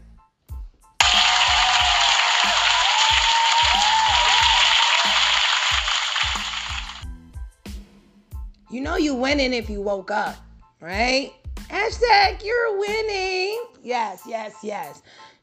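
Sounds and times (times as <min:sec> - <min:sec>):
audience applause: 0:01.0 - 0:07.0
low rhythmic beat: 0:01.0 - 0:07.0
speech: 0:09.0 - 0:15.4.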